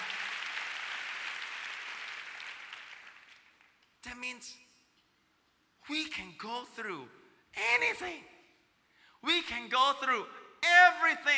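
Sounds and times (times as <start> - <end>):
audience clapping: 0.0 - 4.0
speech: 4.0 - 4.7, 5.9 - 8.3, 9.2 - 11.3.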